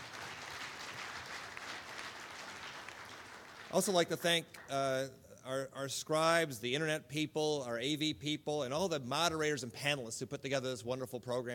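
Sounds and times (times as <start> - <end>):
audience applause: 0.0 - 4.7
speech: 3.7 - 11.5.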